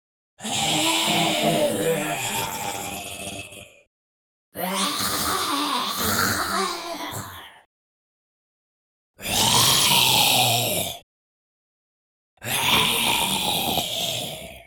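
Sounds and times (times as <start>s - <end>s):
zombies: 0.4s - 3.9s, 4.6s - 7.7s, 9.2s - 11.0s, 12.4s - 14.6s.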